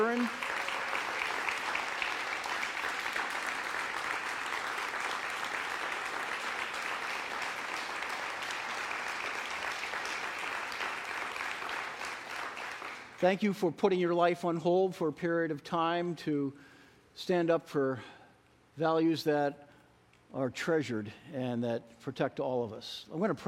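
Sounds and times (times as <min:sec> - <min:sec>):
speech: 0:00.0 - 0:00.6, 0:13.2 - 0:18.2, 0:18.8 - 0:19.6, 0:20.3 - 0:23.4
audience applause: 0:00.0 - 0:13.2.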